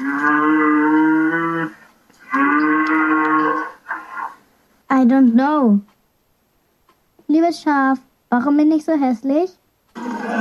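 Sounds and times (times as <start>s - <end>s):
cow mooing: 0.0s - 4.4s, 10.0s - 10.4s
speech: 5.0s - 5.9s, 7.3s - 9.6s.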